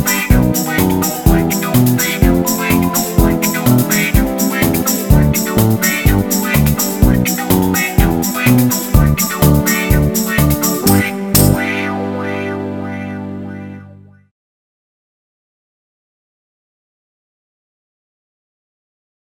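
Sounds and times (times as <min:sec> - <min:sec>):
karaoke singing: 0:00.0 - 0:13.9.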